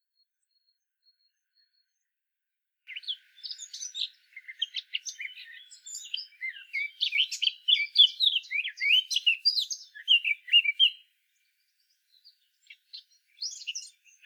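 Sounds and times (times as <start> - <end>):
Eurasian blackcap Sylvia atricapilla song with chattering and warbled notes: 2.9 - 14.2.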